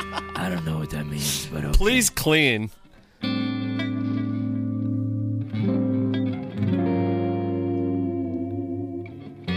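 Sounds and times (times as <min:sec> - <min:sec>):
clean electric guitar playing sustained chords with long delay and reverb: 0:00.0 - 0:00.4, 0:03.1 - 0:09.5
speech: 0:00.2 - 0:02.8.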